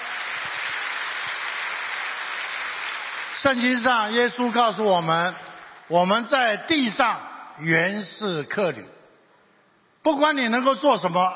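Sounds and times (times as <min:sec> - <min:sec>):
audience applause: 0:00.0 - 0:04.6
speech: 0:03.4 - 0:09.0, 0:10.0 - 0:11.3.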